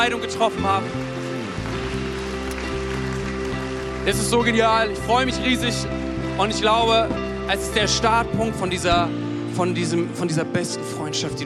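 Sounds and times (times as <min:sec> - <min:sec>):
speech: 0:00.0 - 0:01.2, 0:04.0 - 0:11.4
audience applause: 0:00.0 - 0:05.5.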